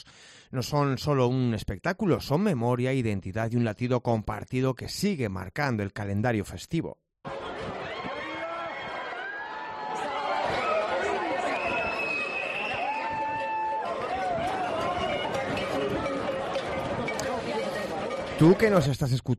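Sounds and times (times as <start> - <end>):
speech: 0.0 - 7.0, 18.4 - 19.3
crowd chattering and shouting at a running of the bulls: 7.2 - 19.2
whistle-like cries: 11.4 - 13.7.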